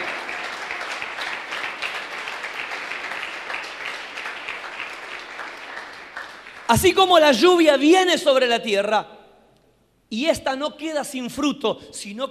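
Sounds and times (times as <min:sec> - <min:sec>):
large crowd applauding: 0:00.0 - 0:07.2
speech: 0:06.7 - 0:09.1, 0:10.1 - 0:12.2.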